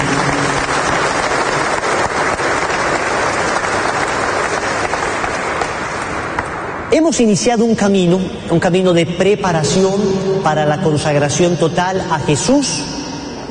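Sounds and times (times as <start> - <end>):
welcoming applause from audience: 0.0 - 6.5
speech: 7.0 - 13.5.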